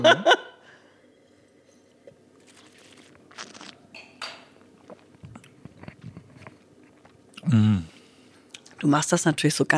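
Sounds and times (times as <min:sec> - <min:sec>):
speech: 0:00.0 - 0:00.4, 0:07.5 - 0:07.9, 0:08.8 - 0:09.7
wine slurped and swished over the palate during a tasting: 0:02.4 - 0:03.8.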